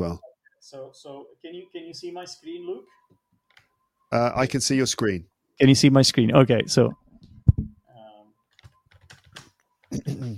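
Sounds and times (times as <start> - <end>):
speech: 0.0 - 3.2, 4.1 - 7.7, 9.9 - 10.3
quiet typing on a computer keyboard: 8.5 - 10.0.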